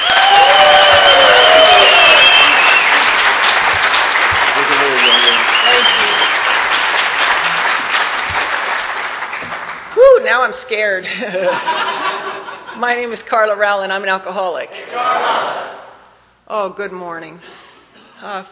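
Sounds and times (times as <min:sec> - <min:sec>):
crowd clapping to welcome a speaker at an Alcoholics Anonymous gathering: 0:00.0 - 0:10.5
speech: 0:10.7 - 0:11.9, 0:12.8 - 0:15.6, 0:16.5 - 0:17.6, 0:18.2 - 0:18.4
laughter: 0:11.0 - 0:12.9, 0:14.8 - 0:15.8.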